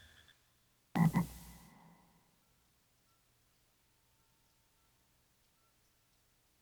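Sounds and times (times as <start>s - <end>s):
frog croaking: 1.0s - 2.0s.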